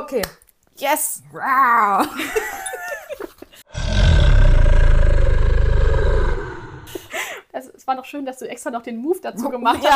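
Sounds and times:
speech: 0.1s - 2.8s, 7.6s - 9.9s
dragon roar sound effect: 3.7s - 7.1s.

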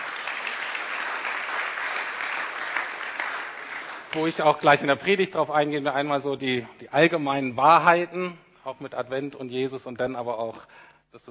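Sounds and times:
audience applause: 0.0s - 4.6s
speech: 4.1s - 11.3s.

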